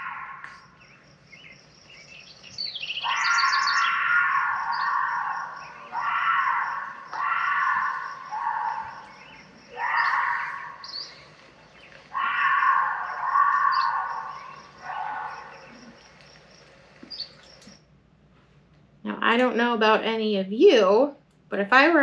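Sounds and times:
mountain lion screaming call: 0.0s - 0.7s, 2.9s - 16.1s
crickets chirping: 0.0s - 19.0s
speech: 19.4s - 22.0s.

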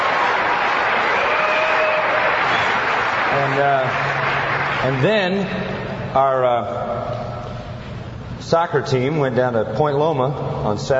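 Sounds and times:
audience applause: 0.0s - 5.3s
speech: 3.6s - 4.1s, 4.8s - 7.2s, 8.4s - 10.9s.

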